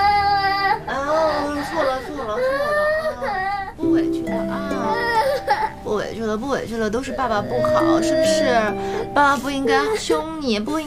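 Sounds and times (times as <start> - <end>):
baby crying: 0.0 - 3.8, 4.6 - 5.9, 7.0 - 9.1
speech: 6.1 - 10.8.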